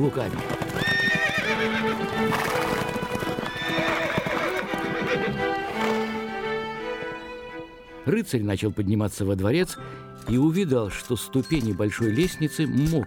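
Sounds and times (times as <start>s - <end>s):
speech: 0.0s - 2.8s, 8.1s - 13.0s
horses galloping, hooves clip-clopping: 0.0s - 6.2s.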